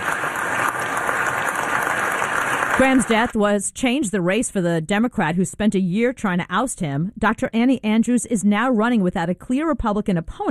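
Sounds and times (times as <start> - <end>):
applause in the Senate chamber: 0.0 - 3.4
speech: 2.8 - 10.4.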